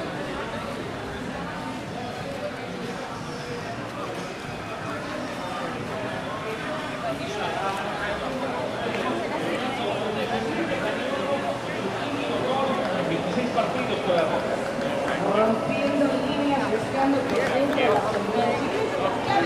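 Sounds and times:
crowd chattering on 5th Avenue in Playa del Carmen: 0.0 - 19.4.

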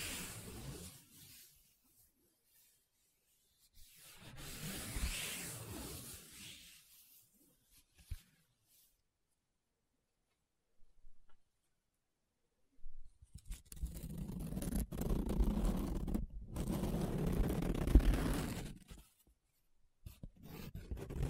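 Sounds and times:
paper being rubbed and scratched: 0.0 - 8.2, 13.4 - 19.3, 20.1 - 21.2.

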